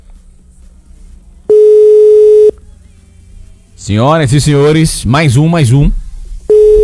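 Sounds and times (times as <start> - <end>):
unanswered phone call ringing tone: 1.5 - 2.5, 6.5 - 6.8
speech: 3.8 - 6.0.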